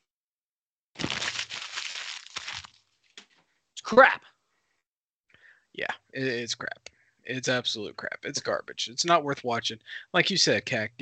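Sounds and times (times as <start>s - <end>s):
something being torn up: 1.0s - 3.3s
speech: 3.9s - 4.3s, 5.8s - 11.0s.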